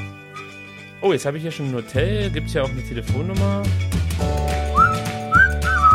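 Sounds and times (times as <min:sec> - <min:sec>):
person whistling a tune: 0:00.2 - 0:00.6, 0:04.7 - 0:05.9
speech: 0:01.0 - 0:04.4.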